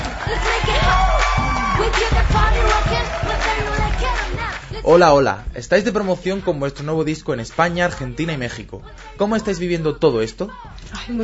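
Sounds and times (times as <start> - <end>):
cheering with high whoops and shouts: 0.0 - 5.2
scattered clapping: 0.0 - 5.2, 5.8 - 8.4
speech: 0.3 - 0.7, 4.8 - 11.2.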